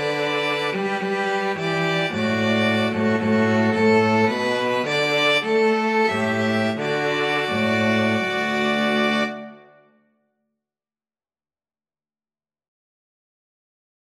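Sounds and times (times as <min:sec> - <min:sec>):
cello: 0:00.0 - 0:09.8
two violins: 0:00.0 - 0:09.8.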